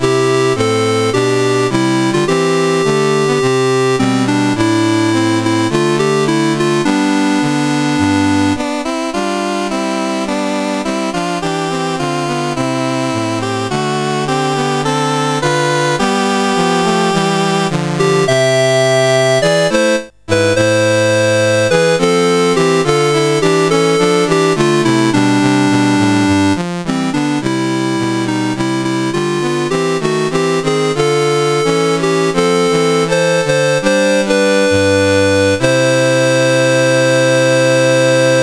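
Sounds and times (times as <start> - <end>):
CSG8580R5 chiptune national anthem: 0.0 - 38.4.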